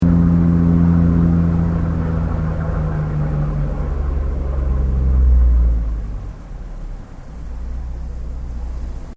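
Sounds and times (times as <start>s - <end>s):
tourist ferry boat stopping: 0.0s - 9.1s.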